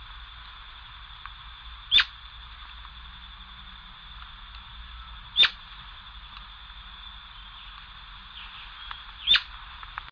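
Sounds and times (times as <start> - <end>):
Atlantic royal flycatcher Onychorhynchus swainsoni sharp calls: 1.8 - 2.3, 4.7 - 9.6.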